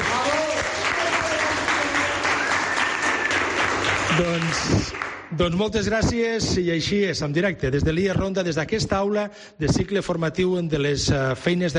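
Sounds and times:
classroom applause: 0:00.0 - 0:05.3
speech: 0:04.2 - 0:11.7.

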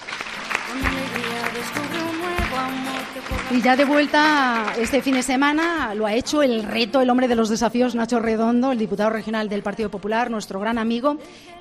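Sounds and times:
audience applause: 0:00.0 - 0:06.9
speech: 0:00.7 - 0:11.5.

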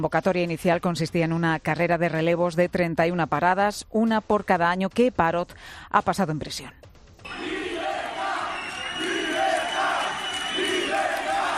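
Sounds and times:
speech: 0:00.0 - 0:07.4
protest crowd shouting: 0:07.3 - 0:11.5.

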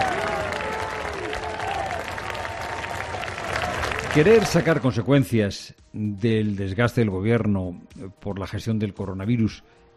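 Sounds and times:
crowd cheering and applauding: 0:00.0 - 0:05.1
speech: 0:04.2 - 0:09.9.

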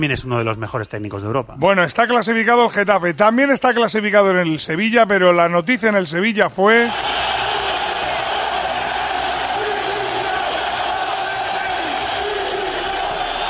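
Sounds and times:
speech: 0:00.0 - 0:07.4
stadium crowd chanting for the coach to resign: 0:06.9 - 0:13.4.

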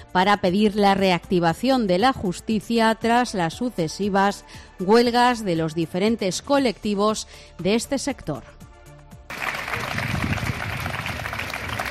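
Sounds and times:
speech: 0:00.1 - 0:08.6
applause at end of lawyers' protest: 0:09.3 - 0:11.8.

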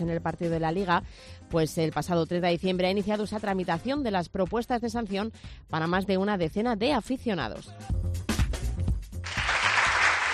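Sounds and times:
speech: 0:00.0 - 0:08.2
applause for a university award: 0:09.2 - 0:10.3.

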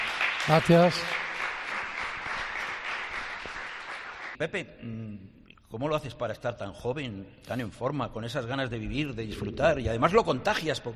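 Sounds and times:
audience applause at a live event at the Fundación San Valero: 0:00.0 - 0:04.4
speech: 0:00.5 - 0:01.2, 0:04.4 - 0:10.9.

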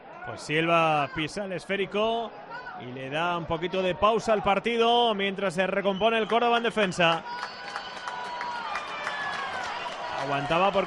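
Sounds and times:
football stadium crowd ovation during a Córdoba match: 0:00.0 - 0:10.8
speech: 0:00.2 - 0:07.6, 0:10.2 - 0:10.8
football stadium crowd whistling: 0:05.6 - 0:10.8.

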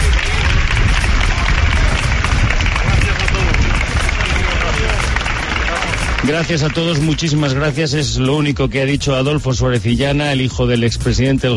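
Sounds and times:
crowd applauding: 0:00.0 - 0:08.5
speech: 0:06.3 - 0:11.5.

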